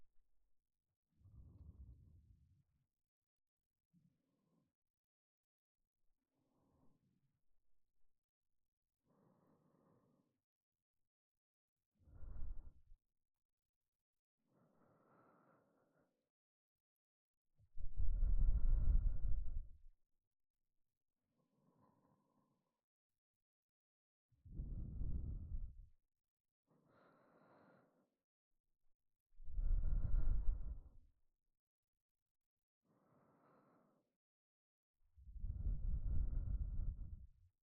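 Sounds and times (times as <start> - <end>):
person breathing in sleep: 12.1 - 12.9, 14.5 - 16.2, 17.8 - 19.7, 24.5 - 25.8, 26.8 - 28.1, 29.4 - 31.0, 32.8 - 34.1, 35.3 - 37.3.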